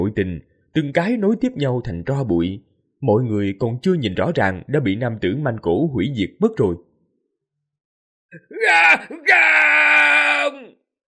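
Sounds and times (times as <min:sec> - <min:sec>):
speech: 0:00.0 - 0:06.9, 0:08.3 - 0:10.8
people screaming in despair: 0:08.4 - 0:10.7.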